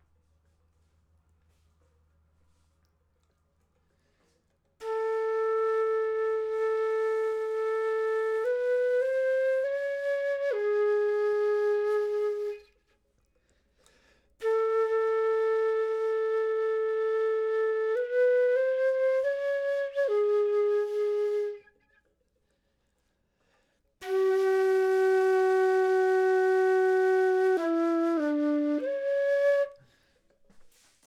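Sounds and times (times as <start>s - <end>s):
flute: 4.8s - 13.0s, 14.4s - 22.0s, 24.0s - 30.7s.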